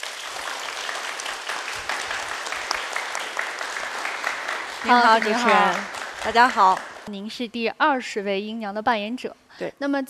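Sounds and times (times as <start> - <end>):
audience applause: 0.0 - 7.1
speech: 4.8 - 10.0.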